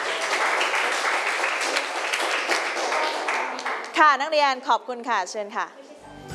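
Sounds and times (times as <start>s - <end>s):
students applauding: 0.0s - 4.0s
speech: 4.0s - 5.8s.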